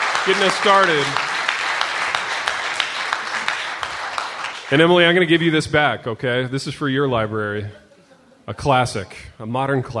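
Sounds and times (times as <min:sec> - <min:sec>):
crowd applause: 0:00.0 - 0:05.3
speech: 0:00.2 - 0:01.3, 0:04.7 - 0:07.8, 0:08.5 - 0:09.9.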